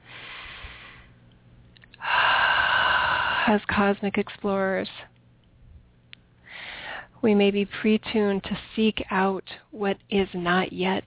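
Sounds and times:
deep breath during a guided meditation: 0.0s - 1.2s, 2.0s - 3.5s, 6.4s - 7.2s
speech: 3.5s - 5.1s, 7.2s - 11.0s.

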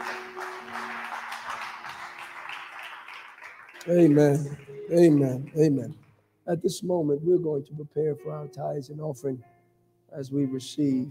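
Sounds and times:
audience hand clapping: 0.0s - 6.2s
speech: 3.8s - 9.5s, 10.1s - 11.0s.

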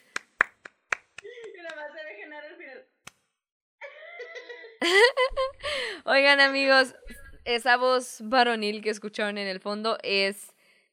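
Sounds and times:
hand claps: 0.0s - 1.8s
laughter: 4.2s - 7.3s
speech: 6.1s - 10.9s.

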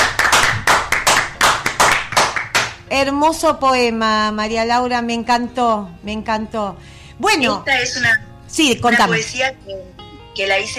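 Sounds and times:
applause: 0.0s - 2.8s
speech: 3.0s - 10.7s.

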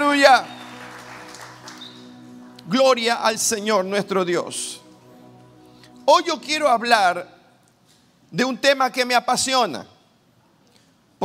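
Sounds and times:
applause: 0.0s - 2.6s
speech: 0.2s - 0.5s, 2.7s - 4.8s, 6.1s - 7.4s, 8.3s - 9.9s.

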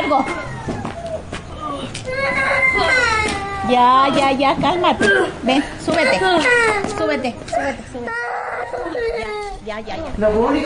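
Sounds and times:
small child crying: 0.0s - 4.3s, 5.9s - 9.6s
speech: 0.1s - 0.8s, 1.7s - 3.0s, 3.7s - 10.6s.

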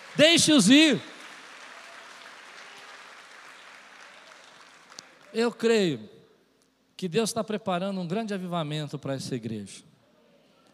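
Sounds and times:
audience applauding: 0.0s - 5.4s
speech: 0.2s - 1.1s, 5.3s - 6.2s, 7.0s - 9.9s.

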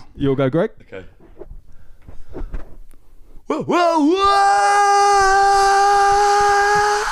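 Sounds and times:
speech: 0.2s - 1.2s, 3.5s - 5.7s
person imitating someone falling with a long scream: 3.5s - 7.1s.

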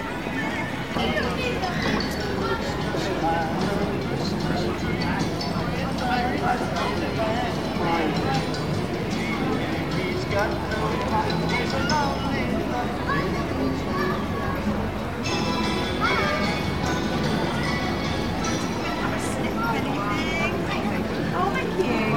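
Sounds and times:
Christmas market crowd babble: 0.0s - 22.1s.

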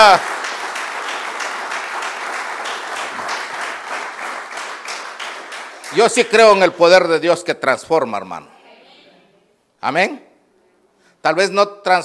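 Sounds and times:
crowd clapping: 0.0s - 7.0s
speech: 0.1s - 0.4s, 5.9s - 8.5s, 9.8s - 10.3s, 11.2s - 12.0s.

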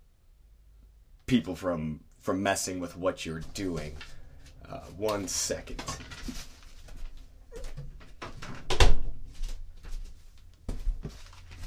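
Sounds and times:
speech: 1.3s - 6.5s
door closing: 7.5s - 9.2s.

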